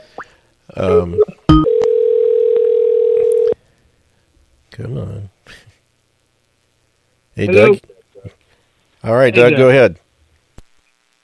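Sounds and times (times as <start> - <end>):
speech: 0.8 - 1.4, 4.8 - 5.6, 7.4 - 7.9, 9.0 - 10.0
telephone dialing tone: 1.5 - 3.6.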